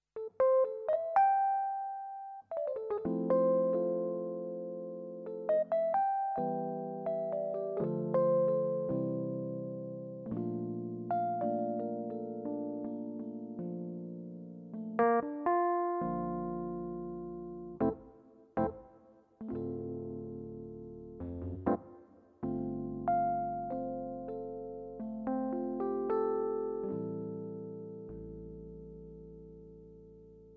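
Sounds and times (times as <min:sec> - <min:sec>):
CP4 Stage electric piano: 0:00.1 - 0:30.5.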